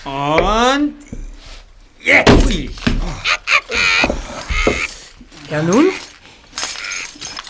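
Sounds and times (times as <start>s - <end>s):
speech: 0.0s - 1.1s, 5.6s - 6.0s
hammer striking something wrapped in a cloth: 2.2s - 6.8s.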